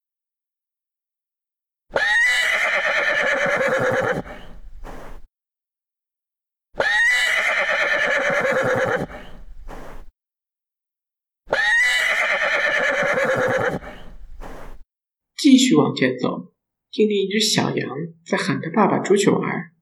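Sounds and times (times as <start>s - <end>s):
pony neighing: 1.9s - 5.2s, 6.8s - 10.0s, 11.5s - 14.6s
speech: 15.7s - 19.7s.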